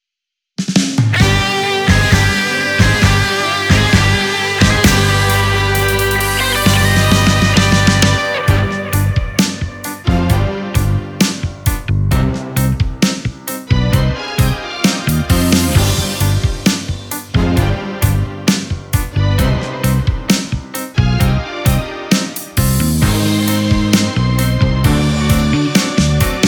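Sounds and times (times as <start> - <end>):
tango orchestra: 1.2 - 26.4.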